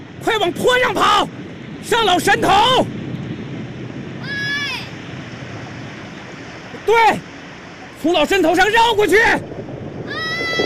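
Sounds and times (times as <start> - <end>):
rushing mountain floodwater as a radio drama sound effect: 0.0 - 10.6
speech: 0.2 - 3.0, 6.9 - 7.3, 8.0 - 9.5.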